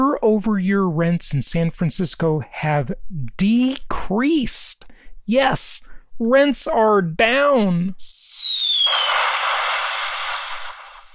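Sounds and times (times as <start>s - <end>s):
speech: 0.3s - 8.2s, 8.8s - 9.5s
bomb dropped from a plane sound effect: 8.1s - 11.1s.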